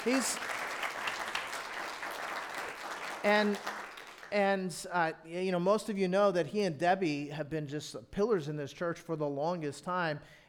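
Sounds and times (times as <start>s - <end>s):
speech: 0.0s - 0.6s, 3.2s - 10.4s
audience applause: 0.0s - 4.3s.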